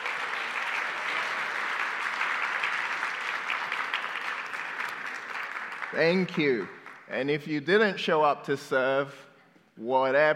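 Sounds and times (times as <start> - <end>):
crowd applauding: 0.0 - 7.2
speech: 5.9 - 9.2, 9.8 - 10.3.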